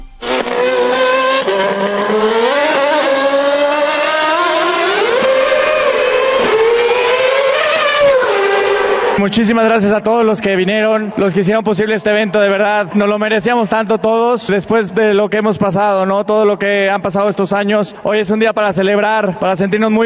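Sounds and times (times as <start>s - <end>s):
Red Bull Formula 1 car engine revving: 0.0s - 9.4s
speech: 1.6s - 2.3s, 9.3s - 20.0s.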